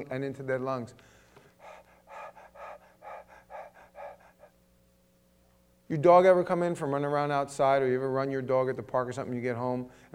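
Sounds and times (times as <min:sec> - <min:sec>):
speech: 0:00.0 - 0:01.2, 0:05.9 - 0:10.1
person imitating a deer panting to cool off: 0:01.5 - 0:04.6.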